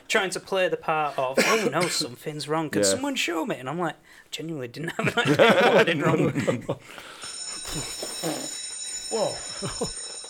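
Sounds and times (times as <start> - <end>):
speech: 0.1 - 10.2
laughter: 4.9 - 6.8, 9.2 - 10.0
bell ringing: 7.0 - 10.2.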